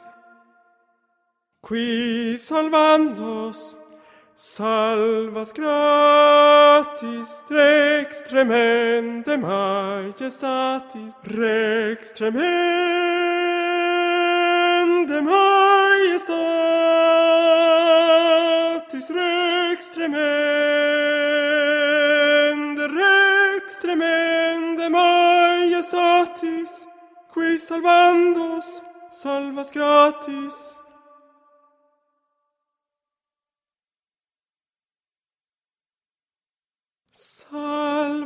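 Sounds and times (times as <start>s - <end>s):
tenor singing: 0.0s - 0.6s, 1.6s - 31.1s.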